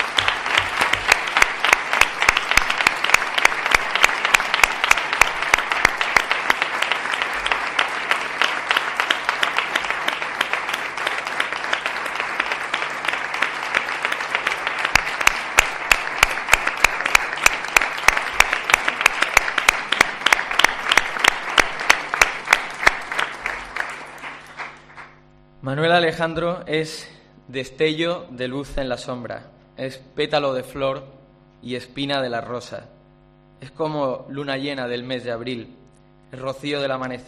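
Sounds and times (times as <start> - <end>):
audience applause: 0.0 - 25.2
speech: 26.0 - 33.0, 33.6 - 37.2.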